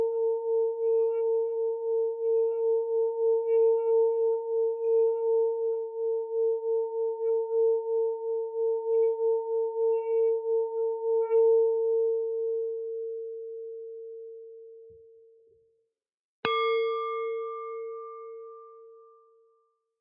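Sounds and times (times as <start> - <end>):
blue singing bowl: 0.0 - 15.6, 16.4 - 20.0.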